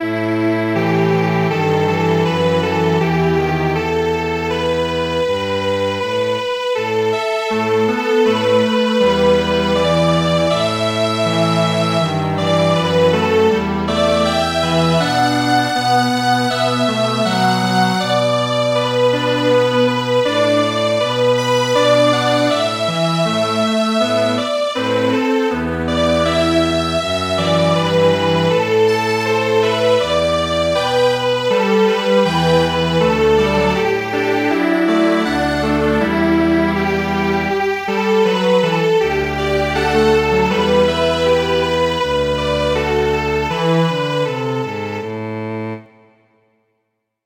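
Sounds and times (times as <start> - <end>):
string quartet playing: 0.0 - 46.0.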